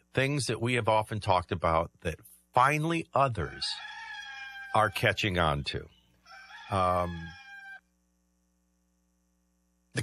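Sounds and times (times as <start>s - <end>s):
speech: 0.2s - 4.0s, 4.7s - 6.0s, 6.7s - 7.4s
rooster crowing: 3.4s - 5.2s, 6.2s - 7.8s.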